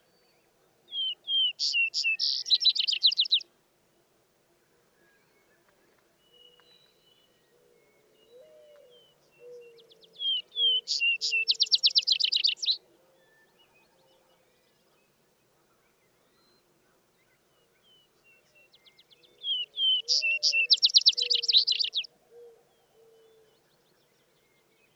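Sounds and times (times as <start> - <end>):
Vesper sparrow song with trill: 0.9 - 3.4, 8.3 - 12.8, 17.8 - 22.1.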